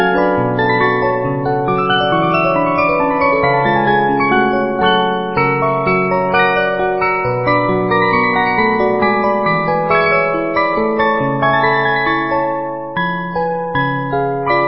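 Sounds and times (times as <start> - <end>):
simulated 72-note music box movement playing a three-part piece: 0.0 - 14.6.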